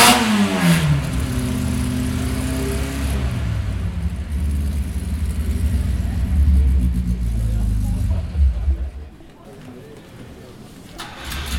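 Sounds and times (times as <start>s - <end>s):
Porsche 718 RS 60 engine: 0.0s - 9.3s, 11.0s - 11.5s.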